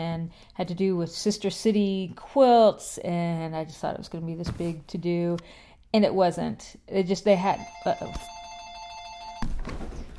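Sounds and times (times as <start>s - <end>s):
speech: 0.0s - 8.4s
telephone ringing: 7.4s - 9.6s.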